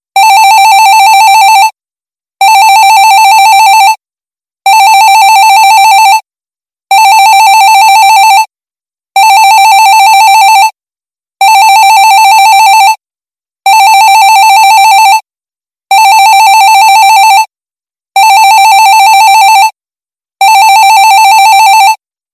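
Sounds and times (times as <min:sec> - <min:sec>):
office phone ringing: 0:00.2 - 0:01.7, 0:02.4 - 0:04.0, 0:04.7 - 0:06.2, 0:06.9 - 0:08.5, 0:09.2 - 0:10.7, 0:11.4 - 0:13.0, 0:13.7 - 0:15.2, 0:15.9 - 0:17.5, 0:18.2 - 0:19.8, 0:20.4 - 0:22.0.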